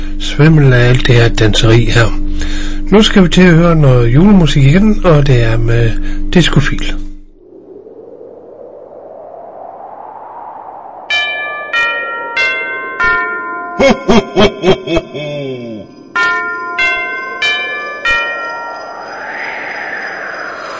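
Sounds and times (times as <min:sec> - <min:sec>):
speech: 0:00.4 - 0:07.0, 0:13.8 - 0:15.6
clock bell striking: 0:11.1 - 0:14.7, 0:16.1 - 0:18.9
laughter: 0:13.8 - 0:15.9.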